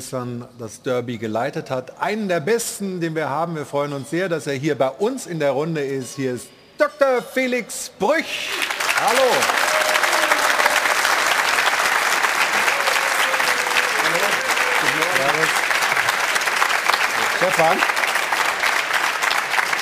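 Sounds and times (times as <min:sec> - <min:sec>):
speech: 0:00.0 - 0:09.6, 0:17.6 - 0:18.0
audience applause: 0:08.4 - 0:19.8.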